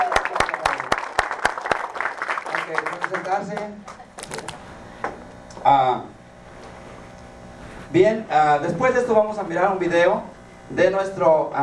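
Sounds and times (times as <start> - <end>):
audience applause: 0.0 - 4.5
speech: 2.7 - 4.5, 5.6 - 6.2, 7.9 - 11.6.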